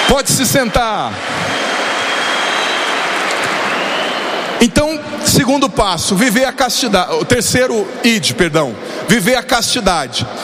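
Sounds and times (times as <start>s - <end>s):
audience applause: 0.0s - 4.6s
speech: 0.1s - 1.8s, 4.6s - 10.4s.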